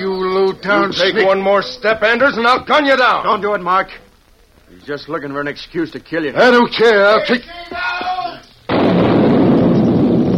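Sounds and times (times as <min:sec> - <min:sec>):
speech: 0:00.6 - 0:04.0, 0:04.8 - 0:08.1
dam being blown up, explosion: 0:08.7 - 0:10.3.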